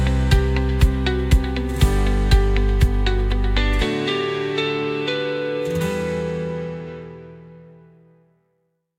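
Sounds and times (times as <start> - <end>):
riff: 0.0 - 8.4.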